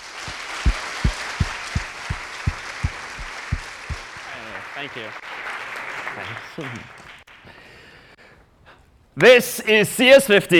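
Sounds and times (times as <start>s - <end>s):
audience applause: 0.0s - 7.3s
speech: 4.8s - 5.3s, 6.2s - 7.6s, 9.2s - 10.5s.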